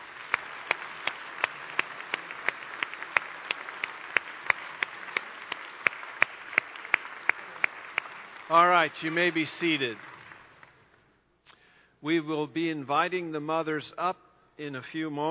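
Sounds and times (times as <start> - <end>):
audience applause: 0.0 - 10.8
speech: 8.5 - 10.1, 12.0 - 15.2.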